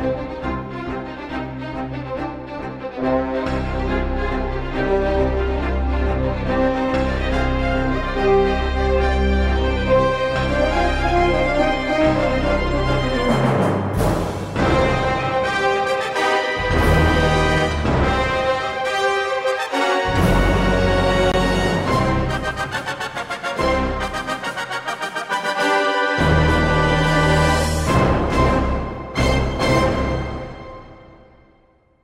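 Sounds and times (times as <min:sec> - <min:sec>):
epic space orchestral music: 0:00.0 - 0:31.8.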